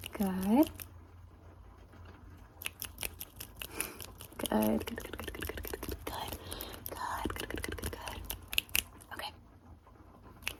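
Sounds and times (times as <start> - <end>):
speech: 0.2 - 0.9, 4.6 - 5.2
fingers snapping: 2.6 - 8.9.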